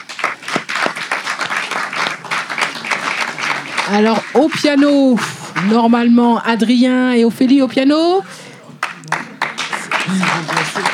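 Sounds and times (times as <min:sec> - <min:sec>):
audience applauding bass player: 0:00.0 - 0:06.2, 0:08.8 - 0:10.9
speech: 0:03.9 - 0:08.4.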